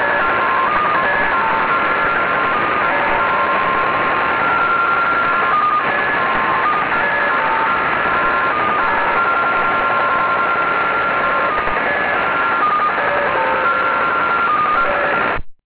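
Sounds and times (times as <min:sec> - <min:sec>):
unidentified radio signal on 6418 kHz: 0:00.0 - 0:15.6.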